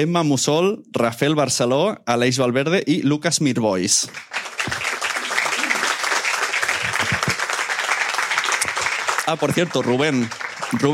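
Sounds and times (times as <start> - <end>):
speech: 0.0 - 4.8, 9.3 - 10.9
audience applause: 4.0 - 10.9.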